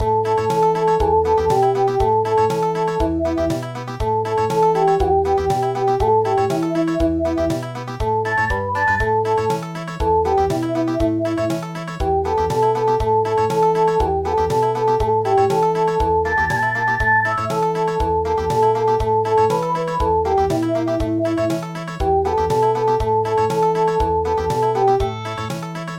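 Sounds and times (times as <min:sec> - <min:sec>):
country music: 0:00.0 - 0:25.9.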